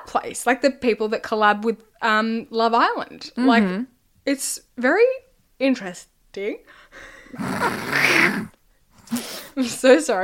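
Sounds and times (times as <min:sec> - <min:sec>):
speech: 0:00.1 - 0:10.2
stifled yawn: 0:07.4 - 0:09.6.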